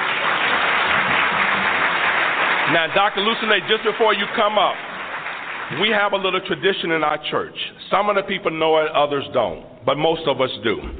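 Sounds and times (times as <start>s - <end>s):
church audience applause at Kowloon International Baptist Church, Hong Kong: 0.0s - 6.4s
speech: 2.7s - 4.8s, 5.7s - 10.9s.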